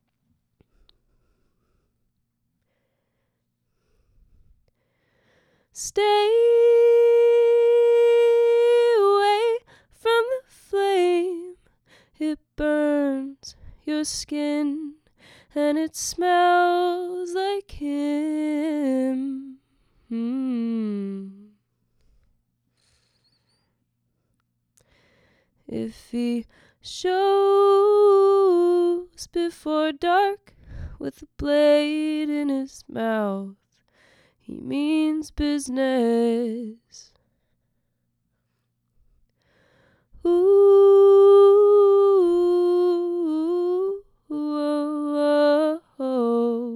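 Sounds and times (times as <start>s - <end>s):
vocals: 5.2s - 21.7s, 24.8s - 37.3s, 39.7s - 46.7s.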